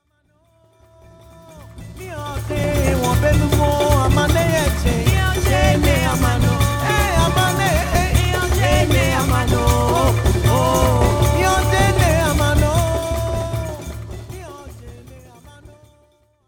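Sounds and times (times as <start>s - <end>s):
song: 1.4s - 15.0s.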